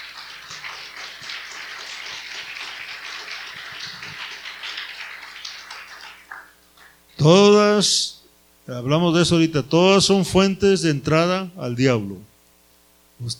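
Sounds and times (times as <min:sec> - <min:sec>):
audience applause: 0:00.0 - 0:07.0
speech: 0:07.2 - 0:08.1, 0:08.7 - 0:12.3, 0:13.2 - 0:13.3.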